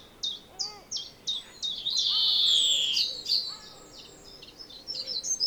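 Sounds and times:
European greenfinch Chloris chloris twittering chirps: 0.3s - 3.7s.

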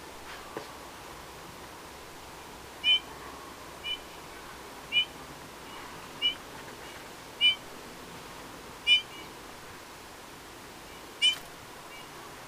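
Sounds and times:
Eurasian bullfinch Pyrrhula pyrrhula giving piped whistles: 2.8s - 3.0s, 4.9s - 5.1s, 6.2s - 6.4s, 7.4s - 7.6s, 8.9s - 9.3s, 11.2s - 12.1s.

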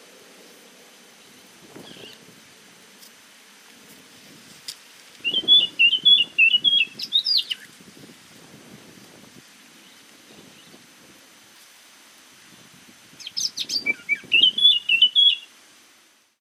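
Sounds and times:
Eurasian blackcap singing: 5.2s - 7.7s, 13.2s - 15.5s.

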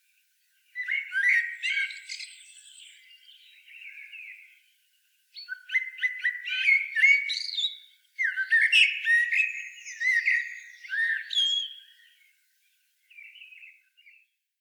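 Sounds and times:
common blackbird singing: 0.8s - 4.6s, 5.4s - 12.2s.

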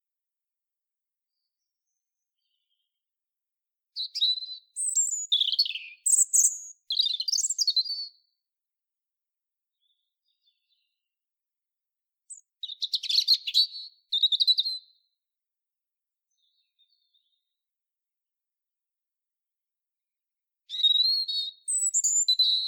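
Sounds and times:
European robin song with high whistles: 4.0s - 8.2s, 12.3s - 14.9s, 20.7s - 22.6s.

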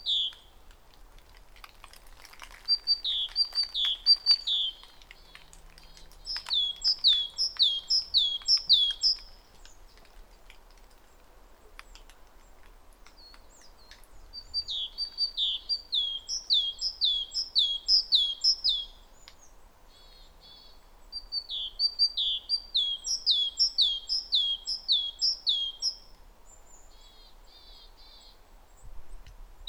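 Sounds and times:
great tit singing: 0.0s - 0.5s, 2.8s - 9.4s, 13.2s - 26.1s.

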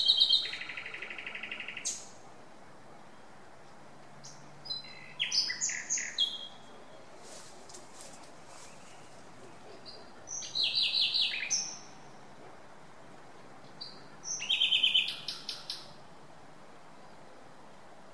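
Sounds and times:
Common nightingale song: 0.0s - 18.1s.

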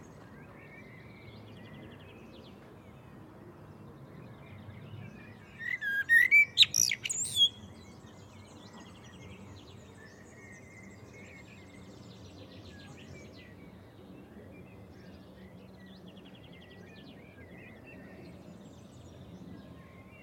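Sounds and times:
Common blackbird Turdus merula whistling and twittering: 5.5s - 7.6s.

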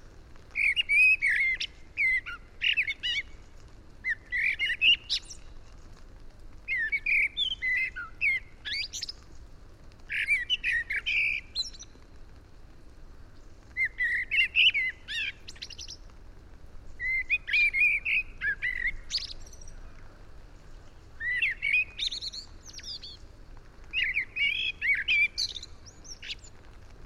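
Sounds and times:
blackbird singing: 0.6s - 3.3s, 4.0s - 5.4s, 6.7s - 9.2s, 10.1s - 11.9s, 13.8s - 16.0s, 17.0s - 20.0s, 21.2s - 23.2s, 23.9s - 26.4s.

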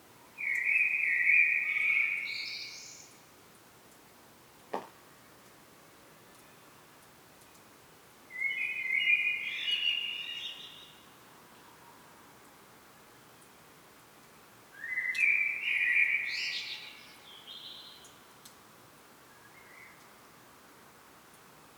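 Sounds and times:
common blackbird song: 0.3s - 3.2s, 8.3s - 11.0s, 14.8s - 18.2s.

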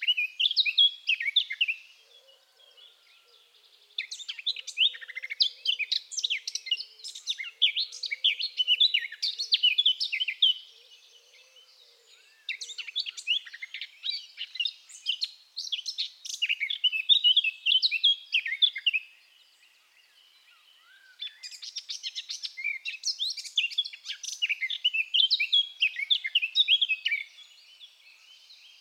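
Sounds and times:
Eurasian blackcap song: 0.0s - 1.8s, 4.0s - 10.7s, 12.5s - 19.1s, 21.2s - 27.6s.

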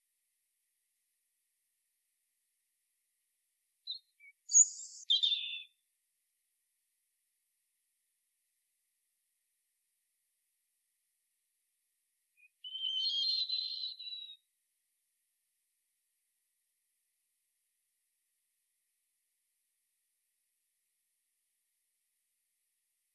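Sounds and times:
European robin Erithacus rubecula singing: 3.9s - 5.8s, 12.4s - 14.4s.

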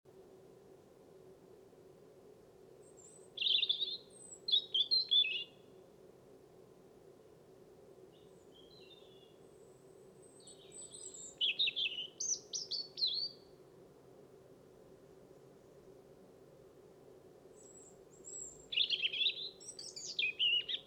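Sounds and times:
European robin singing: 3.0s - 5.6s, 10.3s - 13.5s, 17.6s - 20.8s.

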